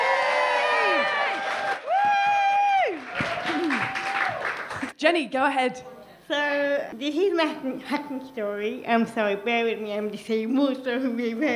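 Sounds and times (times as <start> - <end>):
audience applause: 0.0 - 4.9
speech: 5.0 - 11.5.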